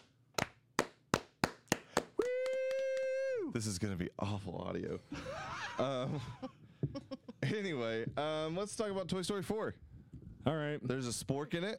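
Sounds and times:
slow clapping: 0:00.4 - 0:03.2
speech: 0:03.6 - 0:11.7.

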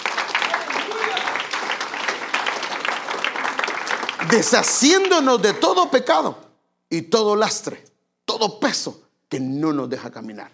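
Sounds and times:
audience applause: 0:00.0 - 0:06.0
speech: 0:04.2 - 0:10.5.

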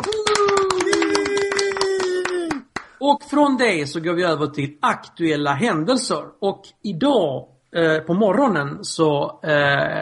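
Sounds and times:
brisk applause from a small group: 0:00.0 - 0:02.9
speech: 0:03.0 - 0:10.0.

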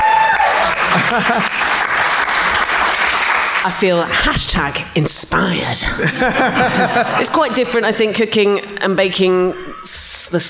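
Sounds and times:
round of applause: 0:00.0 - 0:03.8
laughter: 0:00.6 - 0:02.6, 0:06.0 - 0:08.1
speech: 0:01.1 - 0:01.7, 0:03.6 - 0:10.4.

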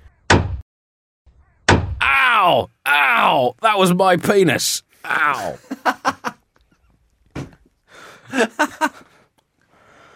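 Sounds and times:
hammer thwacks: 0:01.7 - 0:02.0
speech: 0:02.4 - 0:05.9, 0:08.3 - 0:09.1
laughter: 0:05.2 - 0:06.5, 0:08.2 - 0:09.2.

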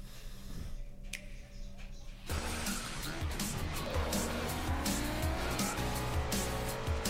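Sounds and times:
racing cars roaring in a Nintendo Switch racing game trailer: 0:02.3 - 0:07.0
squealing tires and skids: 0:02.3 - 0:07.0.

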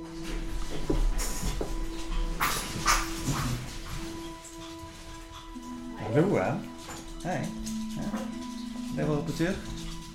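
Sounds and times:
small Pomeranian dogs running: 0:00.0 - 0:10.1
Pomeranian dogs yipping: 0:02.3 - 0:08.9
speech: 0:06.2 - 0:07.6, 0:09.0 - 0:09.7.

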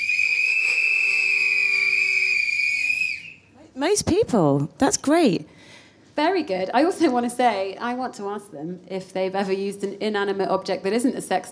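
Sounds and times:
audience whistling: 0:00.0 - 0:03.5
speech: 0:03.8 - 0:11.5.

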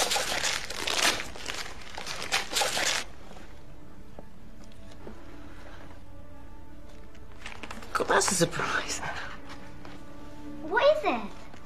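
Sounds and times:
gift wrapping paper tearing around a CD: 0:00.0 - 0:03.1
speech: 0:08.2 - 0:09.3.

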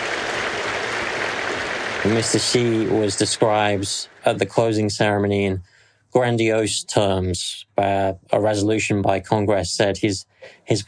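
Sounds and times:
large crowd of congress delegates applauding: 0:00.0 - 0:04.5
speech: 0:02.0 - 0:10.8.

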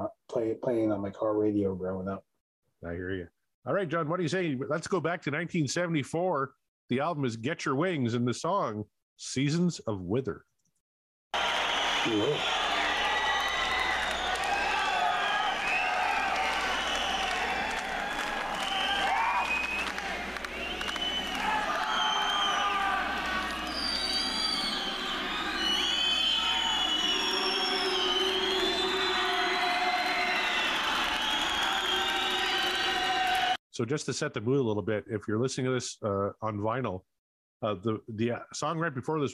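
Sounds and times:
speech: 0:00.3 - 0:10.5, 0:12.0 - 0:12.6, 0:33.8 - 0:39.3
crowd cheering on record: 0:11.3 - 0:33.6.

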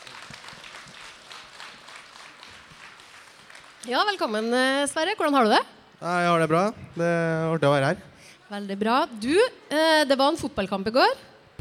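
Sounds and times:
audience applause: 0:00.0 - 0:03.9
speech: 0:03.8 - 0:11.5.

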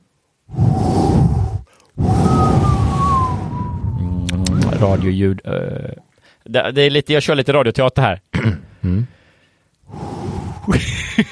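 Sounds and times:
howling storm wind: 0:00.4 - 0:05.3, 0:09.8 - 0:11.1
speech: 0:04.8 - 0:09.2, 0:10.7 - 0:11.3.

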